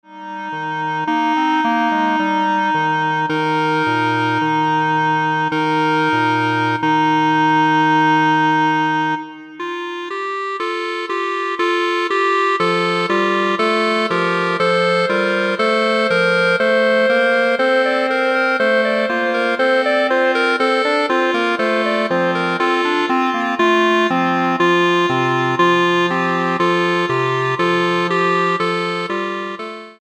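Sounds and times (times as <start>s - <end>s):
clarinet ensemble playing: 0.1s - 29.9s.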